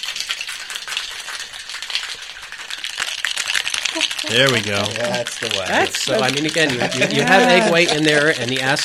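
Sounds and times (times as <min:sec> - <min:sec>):
ice shaken in a cocktail shaker: 0:00.0 - 0:08.8
speech: 0:04.0 - 0:08.8
laughter: 0:04.3 - 0:08.3.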